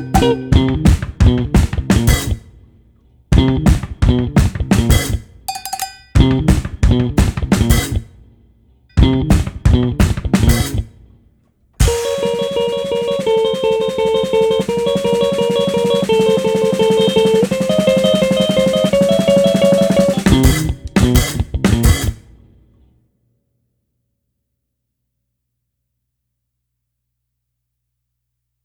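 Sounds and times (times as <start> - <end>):
drums: 0.0 - 22.7.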